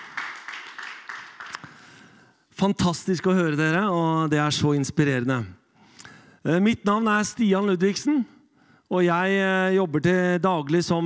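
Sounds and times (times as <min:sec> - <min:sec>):
audience applause: 0:00.0 - 0:02.0
speech: 0:02.6 - 0:05.6, 0:06.4 - 0:11.0.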